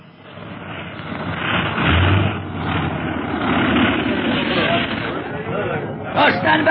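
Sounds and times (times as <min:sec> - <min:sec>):
plane engine as plane lands and taxis: 0:00.0 - 0:06.6.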